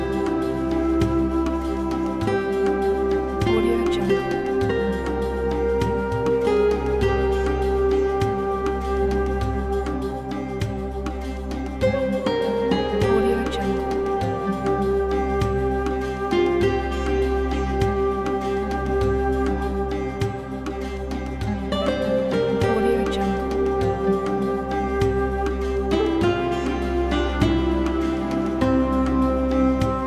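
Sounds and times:
background Arabic ethnic soundscape: 0.0 - 30.0.

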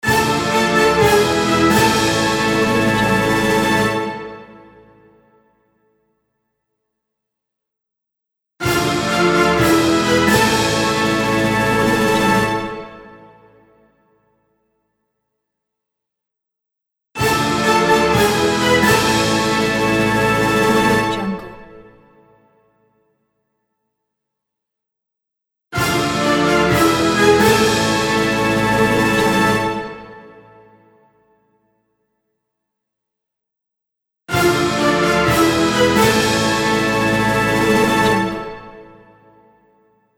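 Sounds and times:
win fanfare: 0.0 - 4.5, 8.6 - 12.8, 17.2 - 21.7, 25.8 - 30.2, 34.3 - 38.8.

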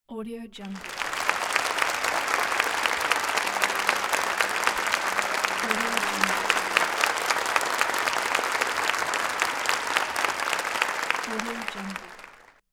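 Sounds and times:
applause: 0.6 - 12.6
laughter: 0.8 - 12.4.

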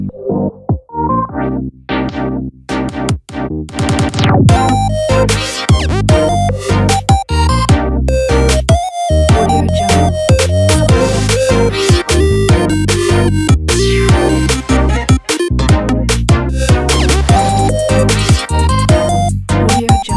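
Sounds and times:
futuristic Japan pop music: 0.1 - 20.1.

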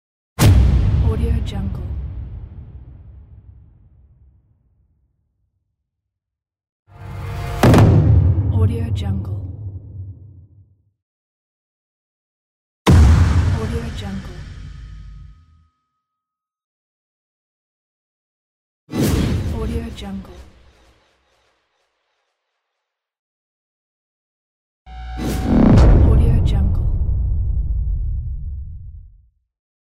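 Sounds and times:
epic trailer hits: 0.4 - 3.8, 7.5 - 10.3, 12.9 - 15.4, 24.9 - 29.1.

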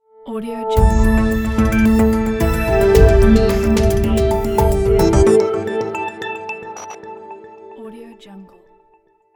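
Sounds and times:
news logo jingle: 0.8 - 7.9.

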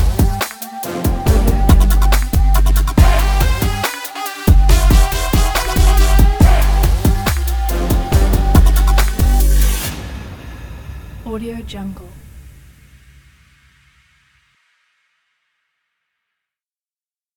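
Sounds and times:
aggressive sports event background: 0.0 - 10.0.

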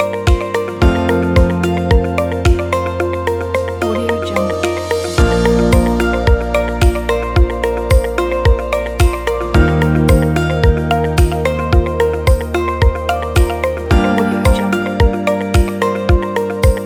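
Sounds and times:
soft inspiring commercial corporate music: 0.0 - 16.8.

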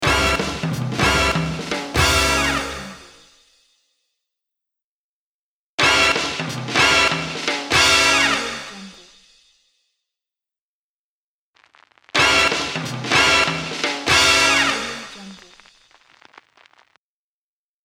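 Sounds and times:
crazy big band logo jingle: 0.0 - 3.2, 5.8 - 8.8, 12.2 - 15.3.

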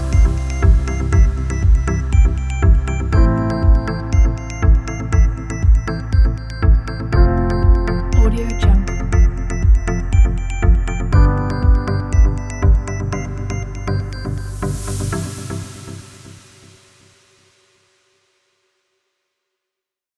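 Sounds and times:
upbeat source music: 0.0 - 15.6.

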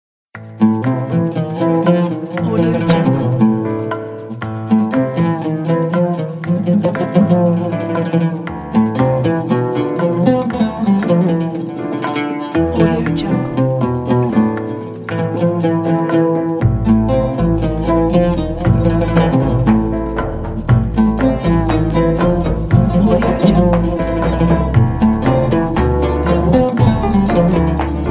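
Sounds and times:
oud playing: 0.4 - 28.0.

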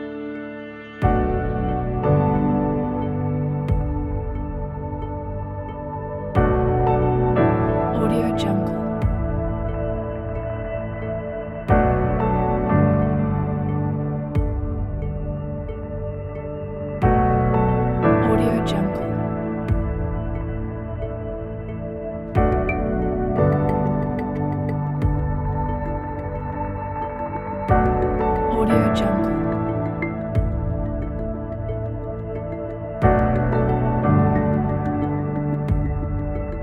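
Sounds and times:
uplifting ambient cinematic music: 0.0 - 36.6.

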